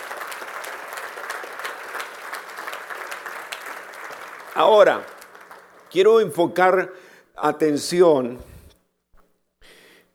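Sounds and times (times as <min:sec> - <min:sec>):
audience applause: 0:00.0 - 0:06.3
speech: 0:04.6 - 0:05.1, 0:05.9 - 0:08.5.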